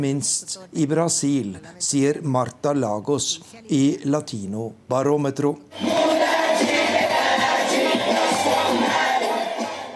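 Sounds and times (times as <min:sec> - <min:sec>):
speech: 0:00.0 - 0:06.1
large crowd of supporters cheering in celebration: 0:05.7 - 0:09.9.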